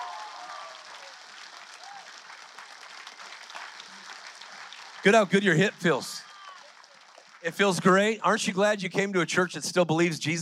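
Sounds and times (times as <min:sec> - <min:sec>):
faint cheers and voices: 0:00.0 - 0:02.4, 0:05.8 - 0:07.0
large crowd applauding: 0:00.0 - 0:09.0
speech: 0:05.0 - 0:06.2, 0:07.4 - 0:10.4.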